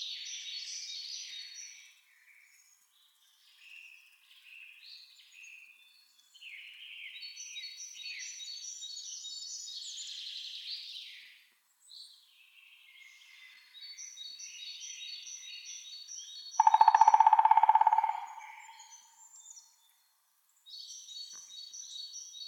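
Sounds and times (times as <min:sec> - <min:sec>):
woodpeckers Picidae: 0:16.6 - 0:19.1.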